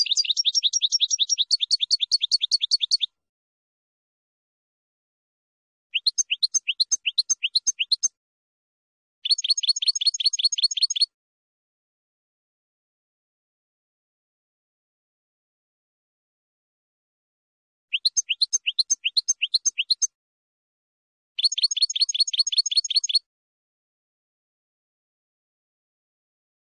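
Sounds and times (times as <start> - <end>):
finch song: 0.0 - 3.2, 5.9 - 8.2, 9.2 - 11.2, 17.9 - 20.2, 21.4 - 23.3.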